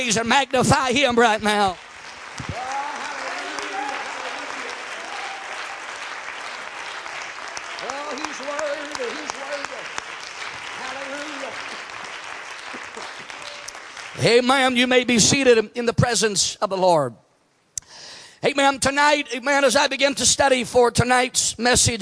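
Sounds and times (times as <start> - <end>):
speech: 0.0 - 1.8, 14.2 - 17.2, 18.4 - 22.0
audience clapping hands: 0.0 - 15.4.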